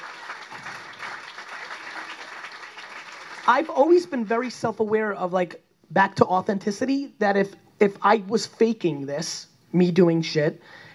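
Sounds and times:
round of applause: 0:00.0 - 0:03.8
speech: 0:03.5 - 0:10.8.

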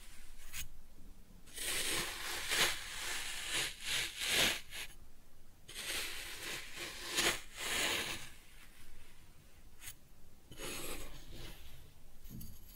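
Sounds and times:
kinetic sand being cut and scooped: 0:01.5 - 0:04.9, 0:05.7 - 0:08.4.

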